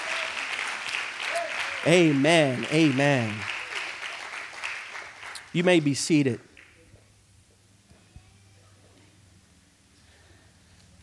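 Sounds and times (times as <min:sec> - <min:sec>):
audience clapping in praise: 0:00.0 - 0:06.8
speech: 0:01.8 - 0:03.5, 0:05.5 - 0:06.5.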